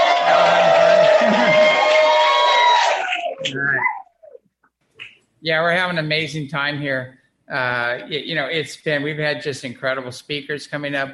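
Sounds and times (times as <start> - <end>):
conference audience cheering: 0.0 - 4.0
speech: 5.4 - 11.1.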